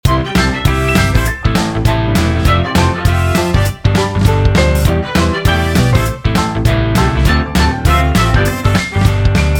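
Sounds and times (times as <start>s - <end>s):
old Motown music: 0.1s - 9.5s.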